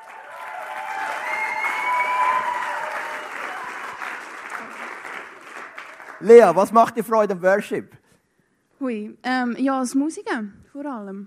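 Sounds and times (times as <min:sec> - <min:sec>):
applause: 0:00.0 - 0:07.4
speech: 0:06.2 - 0:08.0, 0:08.8 - 0:11.2.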